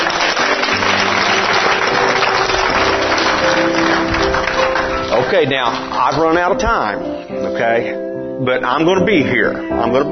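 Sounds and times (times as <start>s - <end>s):
crowd clapping: 0.0s - 6.6s
speech: 5.3s - 10.1s.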